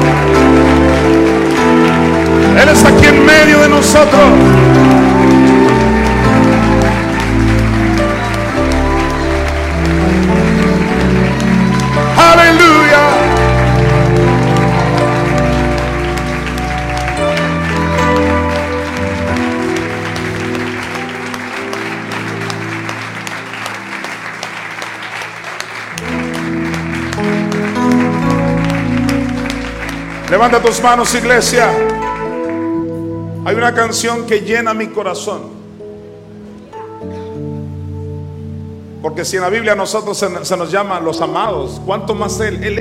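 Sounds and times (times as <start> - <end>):
people clapping: 0.0 - 33.7
speech: 3.4 - 4.9, 30.4 - 31.9, 33.5 - 35.6, 39.1 - 42.7.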